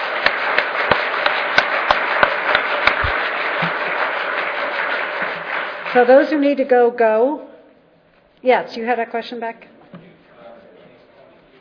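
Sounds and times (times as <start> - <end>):
audience applause for a panel: 0.0 - 6.4
speech: 6.0 - 7.5, 8.4 - 9.7.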